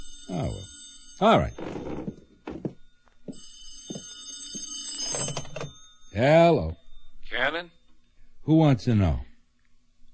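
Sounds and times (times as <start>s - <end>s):
telephone bell ringing: 0.0s - 6.5s
speech: 0.3s - 1.8s, 6.2s - 7.8s, 8.5s - 9.3s.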